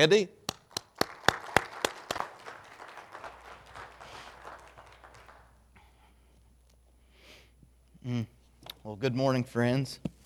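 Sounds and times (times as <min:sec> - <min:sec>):
speech: 0:00.0 - 0:00.4, 0:08.1 - 0:10.2
church congregation clapping for a guest speaker: 0:00.4 - 0:05.8.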